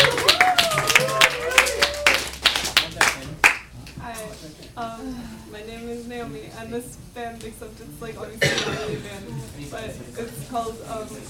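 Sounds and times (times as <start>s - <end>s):
audience clapping: 0.0s - 4.0s
murmuring voices: 0.0s - 11.2s
speech: 6.5s - 11.2s.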